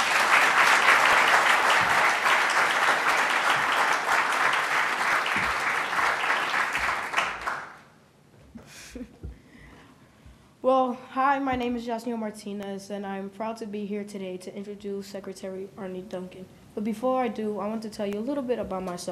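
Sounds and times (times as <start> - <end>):
audience applause: 0.0 - 7.9
speech: 11.4 - 19.1.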